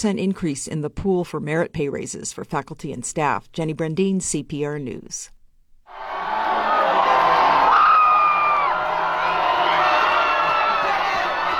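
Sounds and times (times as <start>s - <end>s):
speech: 0.0s - 6.1s
excited hockey fans at a bar cheering University of Denver NCAA championship win: 5.9s - 11.5s
high whoops of hockey fans: 5.9s - 11.5s.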